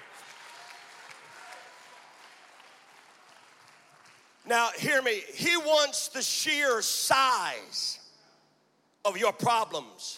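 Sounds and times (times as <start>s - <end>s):
clapping hands: 0.0s - 4.4s
speech: 4.5s - 8.0s, 9.0s - 10.1s.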